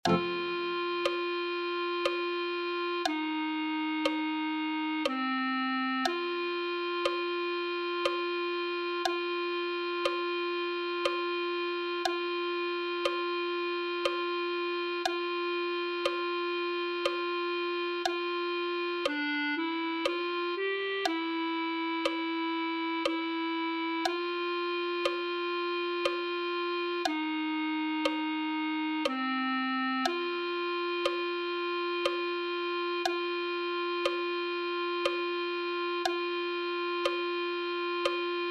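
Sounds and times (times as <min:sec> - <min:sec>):
clarinet: 0:00.0 - 0:38.4.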